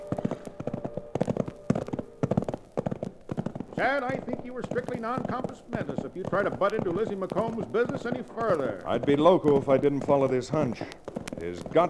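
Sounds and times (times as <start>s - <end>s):
faint tonal hum: 0.0s - 2.6s
horses' hooves clip-clopping while riding: 0.0s - 11.8s
speech: 3.8s - 11.8s.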